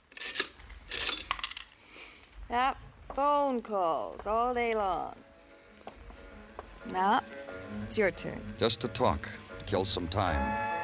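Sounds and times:
dime tossed into a radio: 0.1s - 1.6s
speech: 2.5s - 5.3s, 6.8s - 10.6s.

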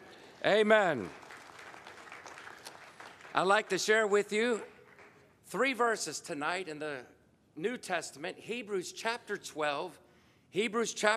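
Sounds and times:
audience applause: 0.0s - 5.2s
speech: 0.4s - 1.2s, 3.4s - 4.7s, 5.5s - 11.1s.

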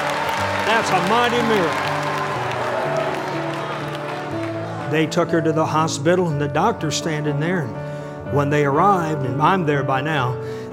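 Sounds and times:
audience applause: 0.0s - 5.6s
speech: 0.7s - 1.9s, 4.9s - 10.7s.

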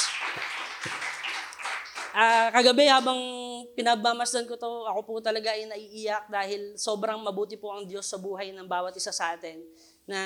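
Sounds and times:
audience applause: 0.0s - 2.2s
speech: 2.2s - 10.2s.

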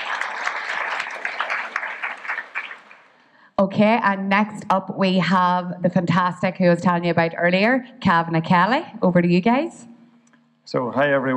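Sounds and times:
audience applause: 0.0s - 3.2s
speech: 3.6s - 9.9s, 10.7s - 11.3s.

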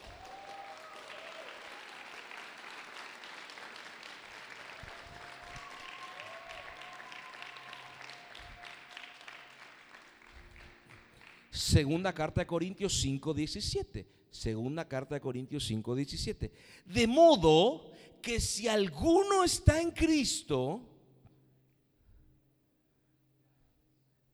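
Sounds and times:
audience applause: 0.0s - 11.5s
speech: 11.7s - 20.9s.

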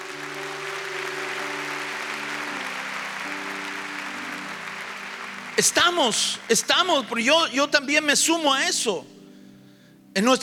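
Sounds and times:
audience applause: 0.0s - 7.6s
speech: 5.6s - 9.2s, 10.2s - 10.4s.

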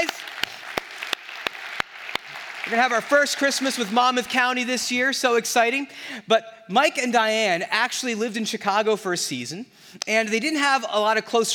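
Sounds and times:
audience applause: 0.0s - 4.6s
speech: 2.7s - 11.5s.

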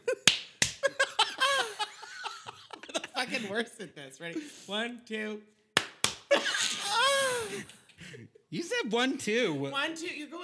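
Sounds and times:
clap: 0.0s - 1.0s, 5.8s - 6.5s
laughter: 0.0s - 4.6s, 6.3s - 8.4s
speech: 3.3s - 5.6s, 7.4s - 10.4s.

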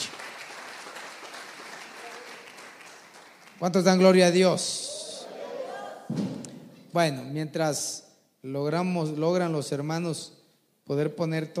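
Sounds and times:
audience clapping loudly: 0.0s - 4.3s
speech: 3.6s - 4.8s, 6.9s - 11.5s.

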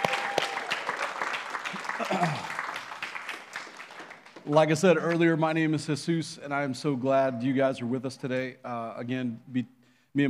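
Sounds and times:
audience clapping: 0.0s - 5.4s
speech: 2.1s - 2.5s, 4.4s - 10.2s.

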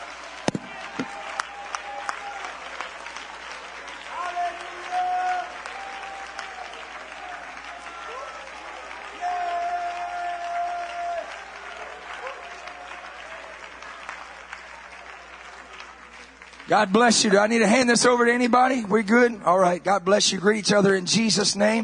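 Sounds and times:
audience shouting: 0.0s - 2.9s, 4.0s - 13.5s
audience clapping: 0.0s - 18.8s
speech: 16.7s - 21.8s.

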